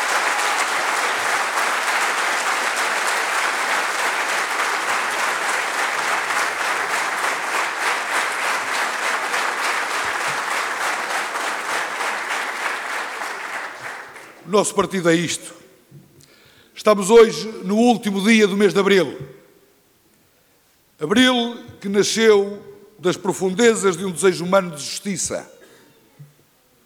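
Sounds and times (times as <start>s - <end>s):
audience applause at a district party inauguration ceremony: 0.0s - 14.5s
speech: 14.5s - 15.6s, 16.8s - 19.3s, 21.0s - 25.6s.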